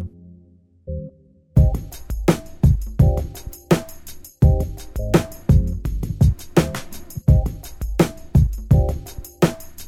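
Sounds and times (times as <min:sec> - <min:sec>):
hip hop riff: 0:01.6 - 0:09.8.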